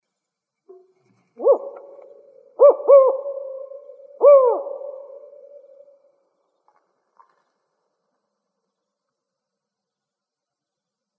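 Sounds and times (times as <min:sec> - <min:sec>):
spotted owl four-note hooting call in Arizona: 0:00.7 - 0:06.1.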